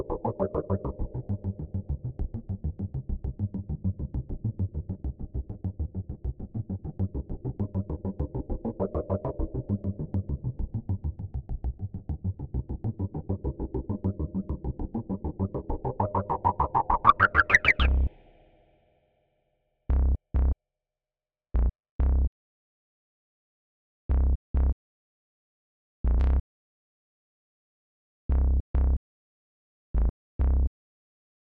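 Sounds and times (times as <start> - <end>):
bass: 0.0 - 18.4, 19.9 - 20.6, 21.5 - 22.3, 24.1 - 24.8, 26.0 - 26.4, 28.3 - 29.0, 29.9 - 30.7.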